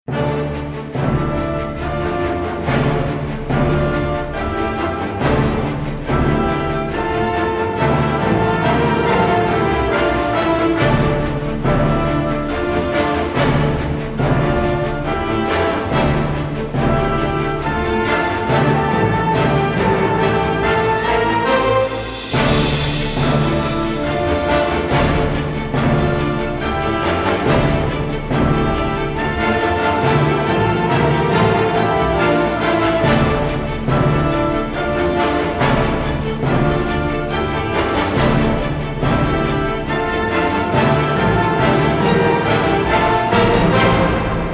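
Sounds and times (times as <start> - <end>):
orchestra only: 0.0 - 44.5.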